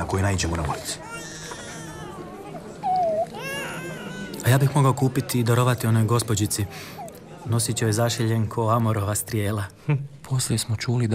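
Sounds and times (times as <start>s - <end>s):
low noise: 0.0s - 11.1s
speech: 0.1s - 1.4s, 4.4s - 11.1s
child wailing cry: 1.1s - 4.4s.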